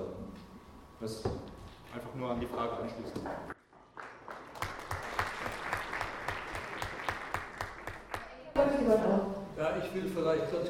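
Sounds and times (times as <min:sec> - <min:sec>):
speech: 0:01.0 - 0:03.6, 0:08.9 - 0:10.6
audience applause: 0:03.6 - 0:08.6.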